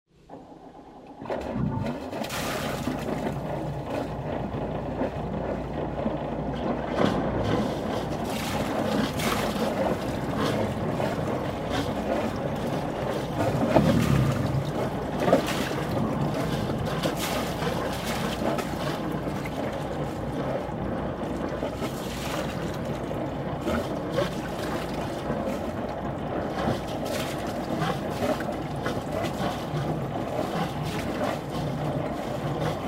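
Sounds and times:
ship engine starting: 0.1 - 32.8.

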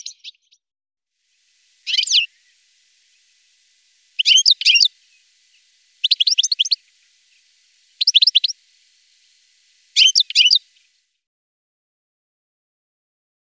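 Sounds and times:
black-headed goldfinch singing: 1.5 - 11.0.

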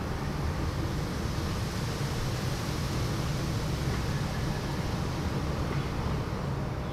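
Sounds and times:
leaves rustling in the wind: 0.0 - 6.8.

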